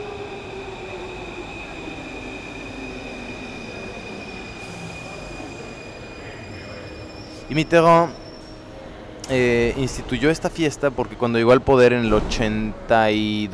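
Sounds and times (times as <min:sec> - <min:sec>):
metro train wheels squealing on rails: 0:00.0 - 0:09.1
metro train arriving with heavy rumble: 0:00.0 - 0:13.5
speech: 0:07.5 - 0:08.2, 0:09.3 - 0:13.5.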